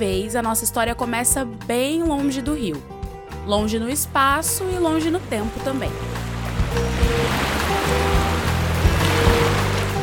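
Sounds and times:
speech: 0:00.0 - 0:06.2
water slapping against a ship's hull: 0:04.6 - 0:10.0.

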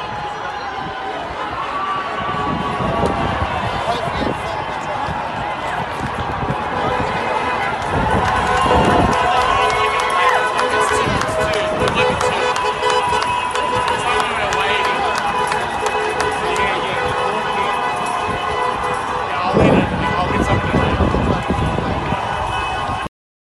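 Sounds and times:
crowd of protesters roaring in the street: 0:00.0 - 0:23.1
protesters shouting: 0:00.0 - 0:23.1.

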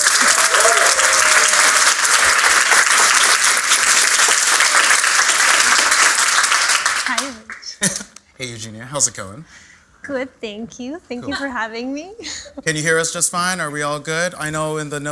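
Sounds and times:
crowd applause: 0:00.0 - 0:07.8
laughter: 0:07.8 - 0:08.2
speech: 0:08.4 - 0:15.1.

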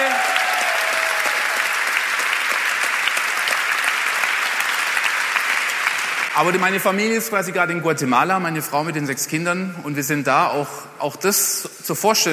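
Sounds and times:
audience applause: 0:00.0 - 0:06.6
speech: 0:06.4 - 0:12.3.

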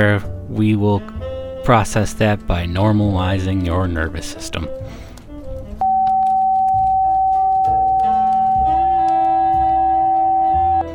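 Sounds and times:
speech: 0:00.0 - 0:05.0
steady high-pitched electronic sine tone: 0:05.8 - 0:10.9.

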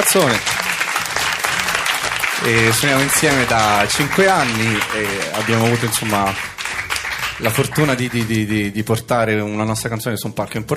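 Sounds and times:
speech: 0:00.0 - 0:00.5, 0:02.4 - 0:06.5, 0:07.4 - 0:10.7
applause: 0:00.0 - 0:08.6.

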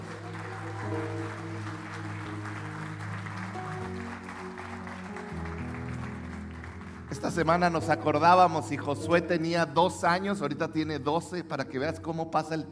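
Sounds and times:
audience applause: 0:00.0 - 0:07.8
speech: 0:07.2 - 0:12.7.

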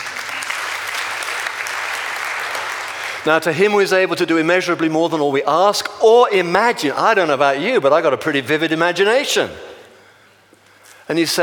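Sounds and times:
audience applause in a church service: 0:00.0 - 0:03.2
speech: 0:03.2 - 0:09.7, 0:11.1 - 0:11.4.

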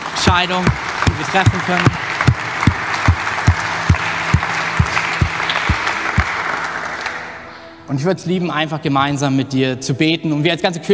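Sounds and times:
audience applause: 0:00.0 - 0:07.4
speech: 0:00.3 - 0:02.0, 0:07.9 - 0:10.9.

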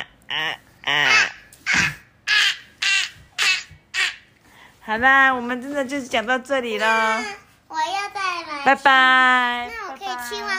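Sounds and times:
crows cawing: 0:00.3 - 0:04.3
speech: 0:04.9 - 0:07.4, 0:08.6 - 0:10.5.

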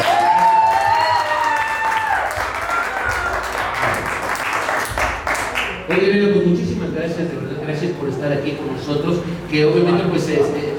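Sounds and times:
audience applause: 0:00.0 - 0:06.0
speech: 0:07.0 - 0:10.7.

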